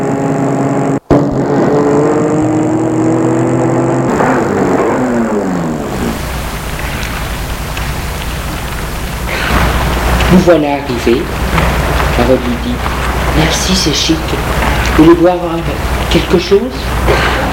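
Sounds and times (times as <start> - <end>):
car pulling up and stopping in front of an apartment building: 0.0 - 17.5
speech: 10.3 - 17.3.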